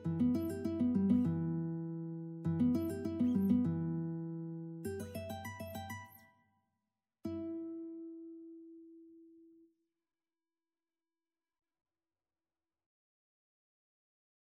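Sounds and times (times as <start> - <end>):
guitar: 0.0 - 6.4, 7.2 - 9.7.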